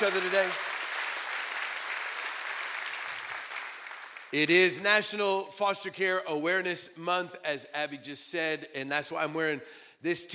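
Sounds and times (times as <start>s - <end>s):
speech: 0.0s - 0.7s, 4.3s - 10.3s
church congregation applauding: 0.0s - 4.5s.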